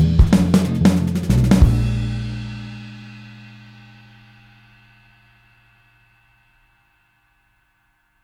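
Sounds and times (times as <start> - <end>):
swing backing track for guitar shredding: 0.0 - 5.4.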